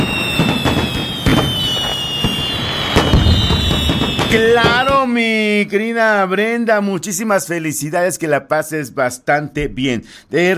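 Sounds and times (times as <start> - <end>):
fireworks crackling and popping: 0.0 - 5.2
speech: 4.3 - 10.5.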